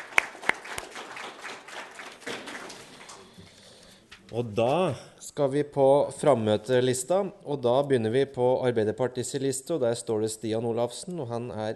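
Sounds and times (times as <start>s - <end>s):
council members applauding: 0.0s - 3.8s
speech: 4.3s - 11.7s.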